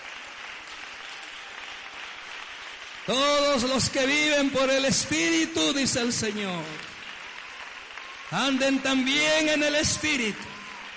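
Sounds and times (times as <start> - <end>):
audience applauding: 0.0 - 10.9
speech: 3.1 - 6.9, 8.3 - 10.5.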